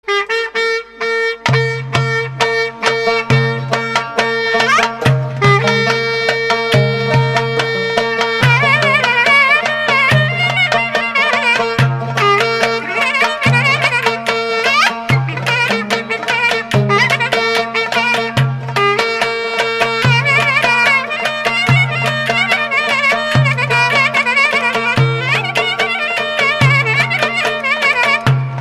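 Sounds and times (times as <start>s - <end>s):
ciftetelli belly dance rhythm music: 0.2s - 28.5s.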